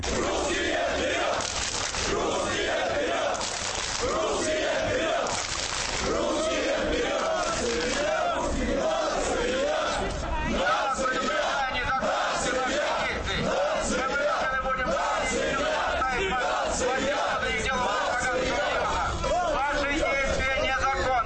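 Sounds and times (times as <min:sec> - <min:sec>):
crowd chanting slogans in ranks: 0:00.0 - 0:21.1.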